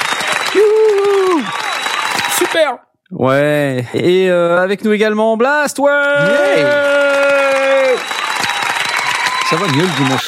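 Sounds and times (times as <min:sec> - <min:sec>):
applause: 0:00.0 - 0:02.8, 0:06.1 - 0:10.2
speech: 0:02.6 - 0:07.0, 0:09.5 - 0:10.2.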